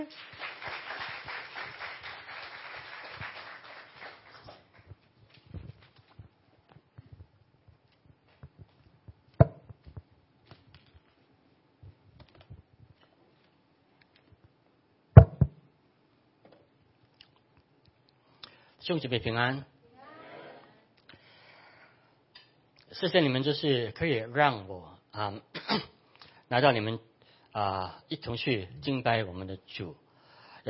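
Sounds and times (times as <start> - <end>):
speech: 0.0 - 0.8, 18.9 - 19.7, 23.0 - 25.9, 26.5 - 30.0
audience applause welcoming a speaker: 0.0 - 4.8
soft taps and shuffles: 4.8 - 13.6
sharp knocks: 9.4 - 9.7, 15.2 - 15.6.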